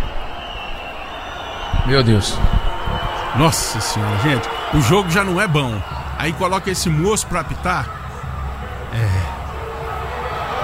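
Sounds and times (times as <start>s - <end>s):
speech: 1.8s - 2.7s, 3.3s - 8.0s, 8.9s - 9.2s
football crowd grumbling angrily at the referee: 8.0s - 10.6s.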